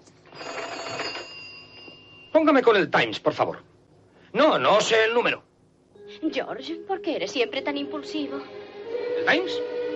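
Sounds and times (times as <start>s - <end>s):
telephone ringing: 0.2s - 2.5s
speech: 2.4s - 3.7s, 4.3s - 5.4s, 6.2s - 8.6s, 9.2s - 9.7s.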